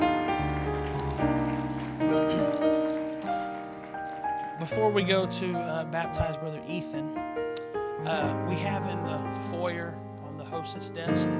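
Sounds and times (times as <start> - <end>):
audience clapping hands in praise: 0.0 - 5.1
speech: 4.7 - 7.4, 8.0 - 11.3.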